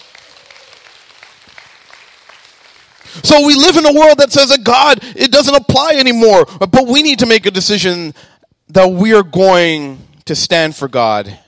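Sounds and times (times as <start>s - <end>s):
crowd clapping: 0.0s - 3.7s
speech: 3.2s - 11.4s.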